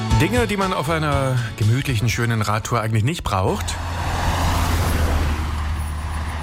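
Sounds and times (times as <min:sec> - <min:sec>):
speech: 0:00.2 - 0:04.2
trucks and cars passing close by on a road with no bike path: 0:02.4 - 0:06.4.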